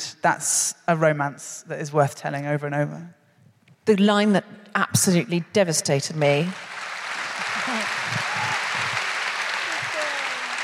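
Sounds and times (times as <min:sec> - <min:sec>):
speech: 0:00.2 - 0:03.2, 0:03.9 - 0:06.8
audience applauding at a live event in the Royal Festival Hall: 0:06.6 - 0:10.6.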